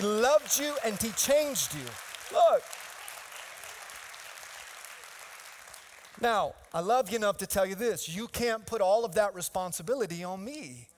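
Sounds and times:
applause from a large crowd: 0.0 - 6.2
speech: 0.3 - 2.8, 6.2 - 10.9.

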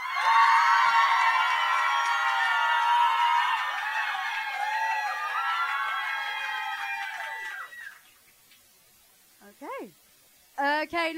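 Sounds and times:
audience cheering for a band: 0.0 - 8.1
speech: 10.8 - 11.1.

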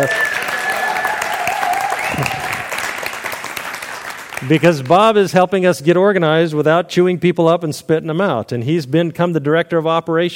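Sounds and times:
speech: 0.0 - 0.3, 4.4 - 10.3
faint whistles and cheers: 0.0 - 2.8
crowd applauding: 0.0 - 5.1.

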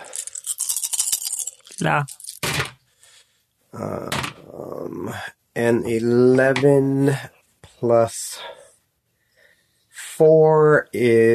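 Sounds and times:
handful of dice rattling and clattering: 0.0 - 2.7
speech: 1.8 - 2.1, 3.7 - 8.6, 10.2 - 11.3.

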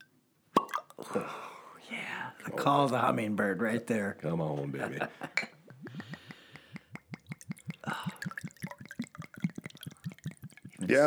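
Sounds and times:
speech: 1.0 - 5.4
vodka poured over ice cubes: 7.1 - 11.0.

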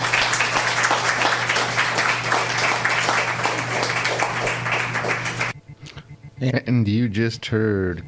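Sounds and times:
audience clapping for a poetry reader: 0.0 - 5.6
low hum: 4.6 - 8.0
speech: 6.4 - 8.0.

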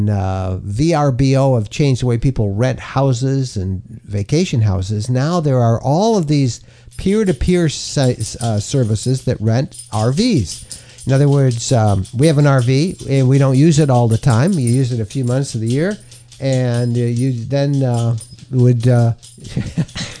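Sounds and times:
speech: 0.0 - 20.1
dog's new license tag jingling as it scratches its neck: 5.9 - 20.1.

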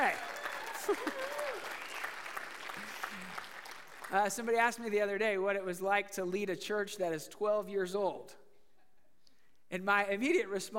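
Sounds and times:
audience hand clapping: 0.0 - 4.8
speech: 0.9 - 1.3, 4.1 - 8.4, 9.7 - 10.7.

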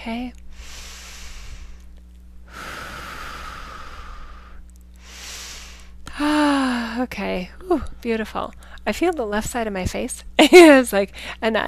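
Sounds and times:
speech: 0.0 - 0.7, 7.0 - 11.6
steady low hum: 0.0 - 11.6
slow deep breathing: 0.5 - 6.9.

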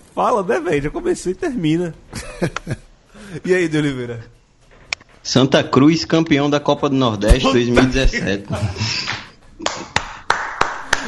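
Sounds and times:
speech: 0.2 - 4.4, 5.2 - 9.2
laughter: 2.1 - 3.4, 7.5 - 10.0
sharp crisp hand claps: 9.0 - 11.0.

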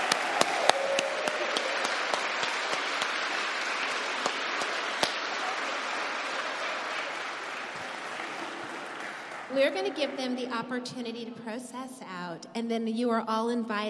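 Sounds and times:
audience applause: 0.0 - 10.2
speech: 9.6 - 13.8.

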